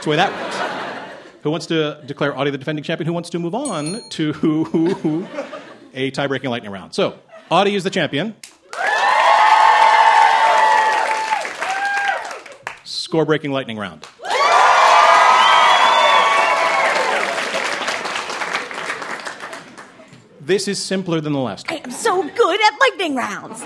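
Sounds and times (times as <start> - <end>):
speech: 0.0 - 0.4, 1.4 - 8.9, 13.1 - 14.2, 20.5 - 23.6
laughter: 0.0 - 2.4, 4.3 - 6.0, 23.4 - 23.6
audience applause and cheering: 8.6 - 12.9, 14.2 - 20.1.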